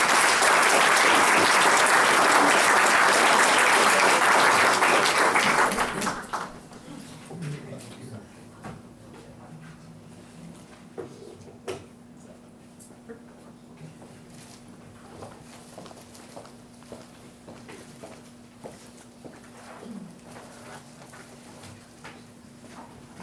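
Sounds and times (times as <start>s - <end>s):
audience applause welcoming a speaker: 0.0s - 6.6s.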